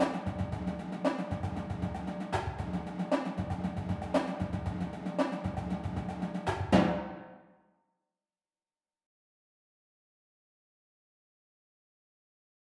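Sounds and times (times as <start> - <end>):
marching cadence: 0.0 - 7.3.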